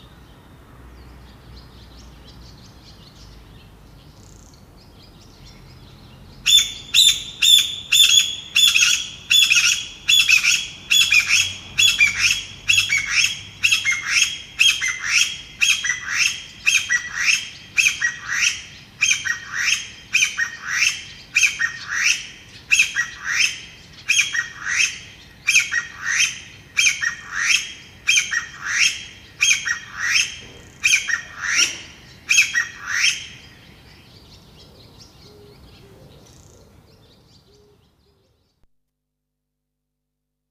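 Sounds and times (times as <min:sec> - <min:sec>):
Chinese bamboo partridge calling: 0:06.4 - 0:33.6.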